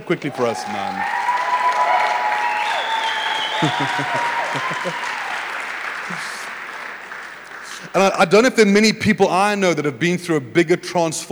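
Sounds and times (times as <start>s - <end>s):
round of applause: 0.0s - 8.9s
laughter: 0.0s - 9.0s
speech: 0.1s - 1.2s, 3.6s - 5.2s, 6.1s - 6.4s, 7.9s - 11.3s.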